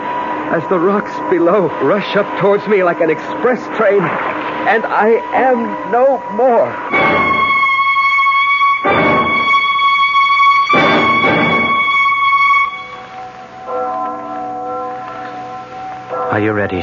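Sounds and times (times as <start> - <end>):
speech: 0.5 - 7.3, 16.4 - 16.8
church bell ringing: 4.7 - 16.8.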